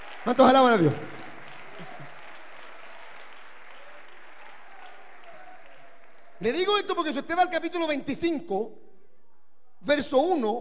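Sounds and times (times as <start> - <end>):
faint voices and cheers: 0.0 - 6.5
crowd clapping in a large room: 0.0 - 7.1
speech: 0.2 - 1.2, 6.4 - 8.8, 9.8 - 10.6.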